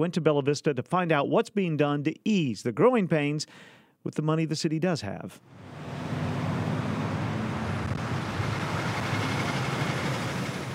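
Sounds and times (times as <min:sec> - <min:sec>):
speech: 0:00.0 - 0:06.1
cars and trucks at a traffic light: 0:05.4 - 0:10.7.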